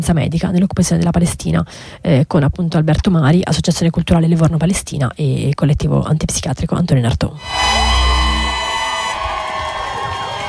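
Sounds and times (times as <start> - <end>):
speech: 0.0 - 8.0
sustained musical tones: 7.4 - 9.8
concert audience cheering with whoops and shouts: 7.7 - 10.4
concert audience applause: 9.1 - 10.4.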